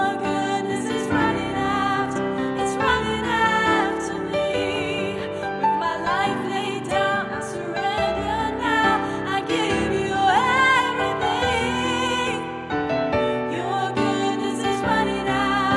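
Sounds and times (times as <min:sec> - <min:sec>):
alto choir singing: 0:00.0 - 0:15.7.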